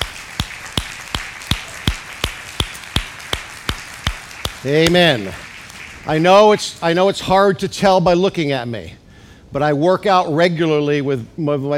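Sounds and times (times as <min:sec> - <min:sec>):
crowd audience clapping hands: 0:00.0 - 0:06.8
speech: 0:04.6 - 0:05.4, 0:06.0 - 0:11.7.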